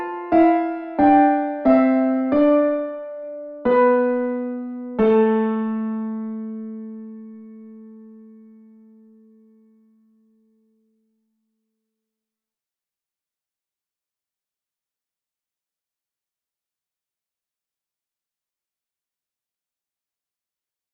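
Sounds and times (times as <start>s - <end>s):
background music: 0.0s - 8.7s.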